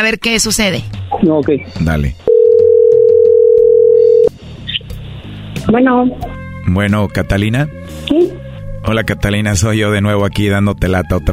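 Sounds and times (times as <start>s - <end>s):
speech: 0.0s - 2.3s, 5.6s - 11.3s
telephone dial tone: 2.3s - 4.3s.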